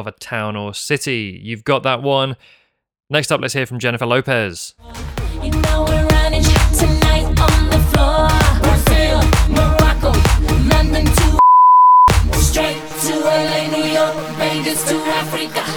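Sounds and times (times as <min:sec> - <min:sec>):
speech: 0:00.0 - 0:08.6, 0:13.2 - 0:15.7
busy loud music: 0:04.8 - 0:11.4, 0:12.1 - 0:15.7
high-pitched censor beep over a town name: 0:11.4 - 0:12.1.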